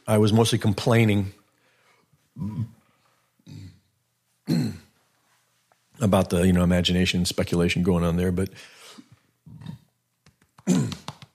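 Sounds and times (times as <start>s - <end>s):
speech: 0.1s - 1.4s, 2.4s - 2.8s, 6.0s - 8.8s
man burping loudly: 2.4s - 2.8s, 3.4s - 3.9s, 4.5s - 4.9s, 9.4s - 9.9s, 10.6s - 11.1s.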